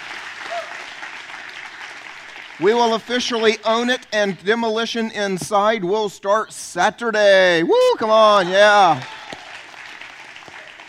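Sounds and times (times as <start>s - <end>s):
crowd applause: 0.0s - 3.1s, 8.4s - 10.8s
cheering whoop: 0.4s - 0.9s, 7.7s - 9.7s
speech: 2.6s - 9.2s.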